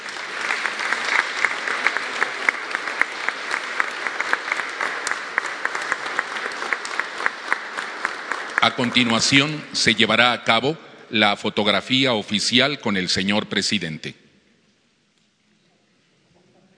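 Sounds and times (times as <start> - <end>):
crowd applause: 0.0 - 9.9
speech: 8.7 - 14.2.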